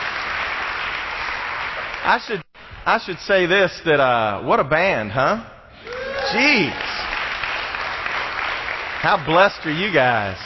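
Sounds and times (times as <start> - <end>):
dense audience applause: 0.0 - 2.2, 5.9 - 10.4
speech: 2.0 - 5.5, 6.3 - 6.9, 9.0 - 10.4.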